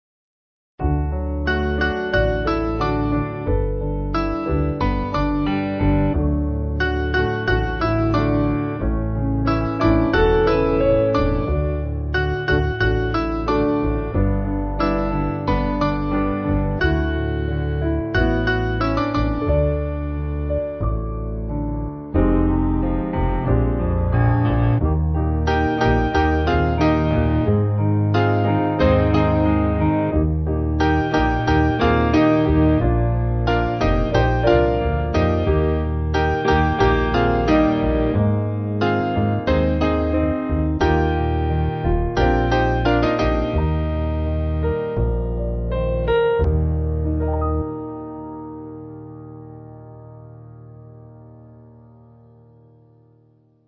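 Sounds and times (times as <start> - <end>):
piano: 0.8 - 53.6.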